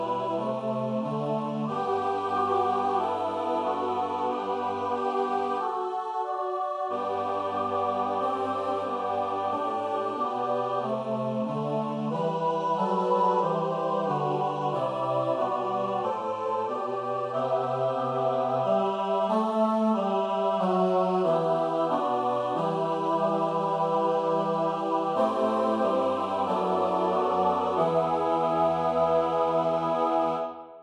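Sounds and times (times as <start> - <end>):
SATB choral playback: 0.0 - 30.8.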